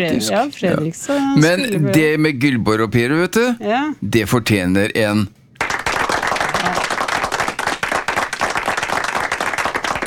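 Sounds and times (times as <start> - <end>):
speech: 0.0 - 5.4
applause: 5.6 - 10.0.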